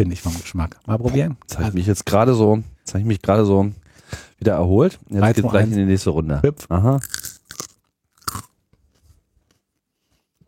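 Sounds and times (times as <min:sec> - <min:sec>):
speech: 0:00.0 - 0:07.3
crunchy paprika being chewed: 0:07.0 - 0:08.6.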